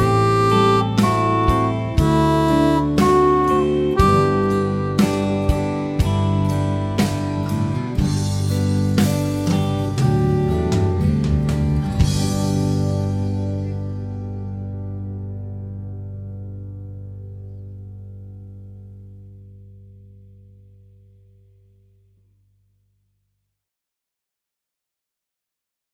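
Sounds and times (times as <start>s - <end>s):
harp: 0.0s - 14.7s.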